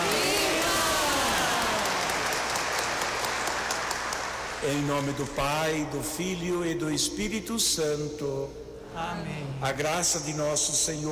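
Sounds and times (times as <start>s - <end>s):
applause for Our Lady of Fátima at a Catholic Mass: 0.0s - 5.8s
speech: 4.6s - 11.1s.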